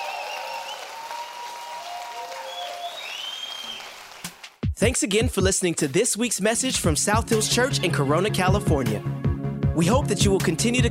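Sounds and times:
audience applause: 0.0s - 4.6s
speech: 4.8s - 10.8s.

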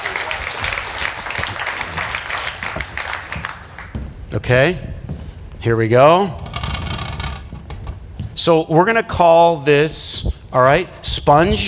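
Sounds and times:
audience applause: 0.0s - 4.0s
speech: 4.3s - 4.9s, 5.6s - 6.4s, 8.4s - 11.6s.

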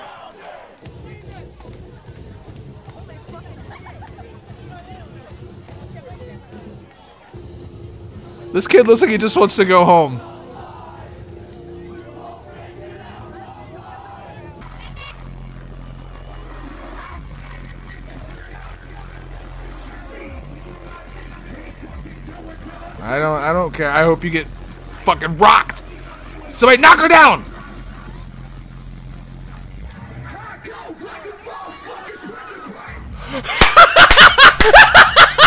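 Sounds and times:
concert crowd screaming and cheering: 0.0s - 4.0s, 8.3s - 23.4s, 24.5s - 35.4s
concert crowd murmuring: 0.0s - 34.4s
laughter: 3.3s - 5.1s, 16.4s - 23.0s, 31.4s - 35.4s
band playing low droning music: 7.4s - 30.1s
speech: 8.5s - 10.3s, 23.9s - 25.8s, 26.6s - 27.5s.

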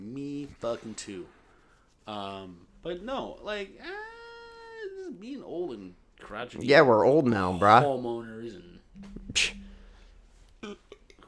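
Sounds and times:
speech: 0.6s - 1.4s, 2.1s - 4.1s, 5.1s - 9.5s, 10.6s - 11.2s
burp: 9.0s - 11.1s.

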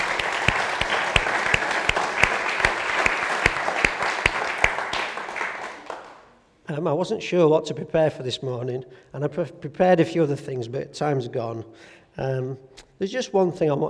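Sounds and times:
audience applause: 0.0s - 6.3s
speech: 6.7s - 13.8s.

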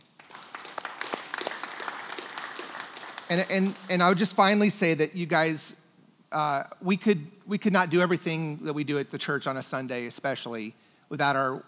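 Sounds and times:
audience applause: 0.1s - 4.1s
speech: 3.3s - 11.6s.

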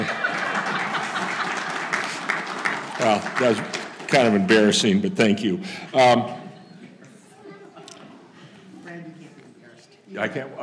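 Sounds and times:
audience round of applause: 0.0s - 5.0s
laughter: 0.0s - 9.2s
speech: 3.0s - 6.4s, 10.2s - 10.6s.

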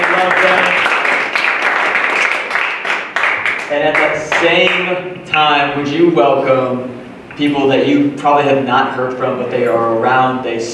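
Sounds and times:
audience applauding two guests at a live event: 0.0s - 4.9s
speech: 4.4s - 10.7s.

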